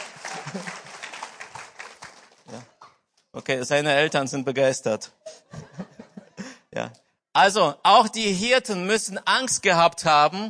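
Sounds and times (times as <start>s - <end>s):
laughter: 0.0s - 1.2s, 5.3s - 6.6s
audience applause: 0.0s - 2.8s
speech: 0.5s - 0.8s, 2.5s - 2.7s, 3.4s - 5.2s, 6.8s - 10.4s.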